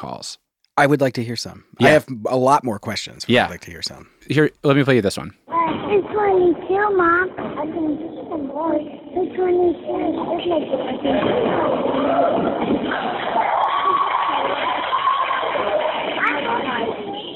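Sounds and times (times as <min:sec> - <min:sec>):
speech: 0:00.0 - 0:13.6
crowd voices and shouts at a basketball game: 0:05.5 - 0:17.3.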